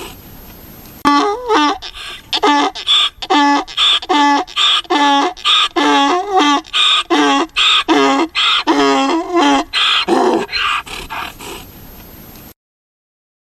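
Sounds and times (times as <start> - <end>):
donkey (Equus asinus) braying: 1.0 - 11.7.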